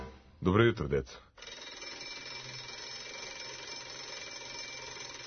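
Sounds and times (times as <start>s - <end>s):
speech: 0.5s - 1.5s
alarm clock ringing: 1.4s - 5.2s.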